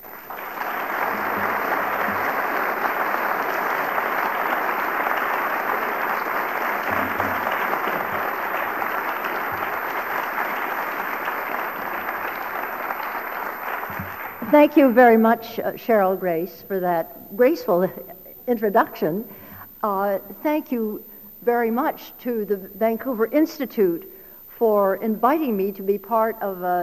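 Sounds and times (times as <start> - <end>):
audience applause welcoming a lecturer at a Vancouver Institute lecture: 0.0 - 14.5
speech: 14.5 - 26.8.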